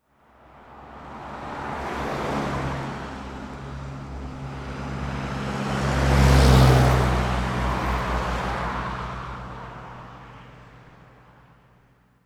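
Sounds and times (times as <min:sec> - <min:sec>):
truck passing: 0:00.7 - 0:10.2.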